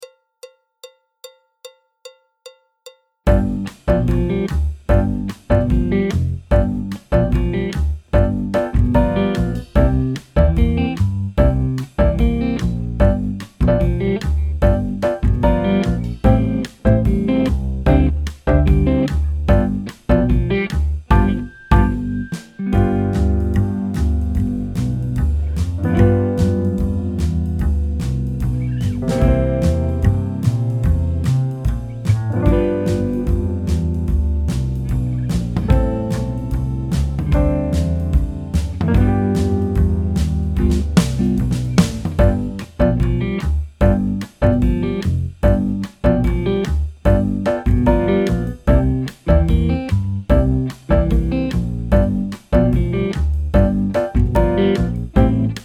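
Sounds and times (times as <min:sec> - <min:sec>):
jazz backing track: 0:03.3 - 0:55.6.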